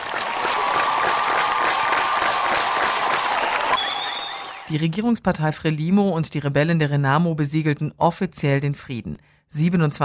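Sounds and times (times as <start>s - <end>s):
applause at peace treaty signing: 0.0s - 4.8s
speech: 4.7s - 10.0s.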